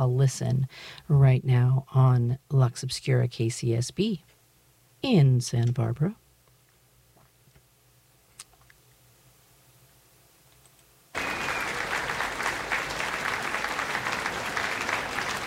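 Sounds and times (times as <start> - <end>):
speech: 0.0 - 4.3, 5.0 - 6.2
audience applause as orchestra takes stage: 11.2 - 15.4
orchestra tuning up: 11.2 - 15.4.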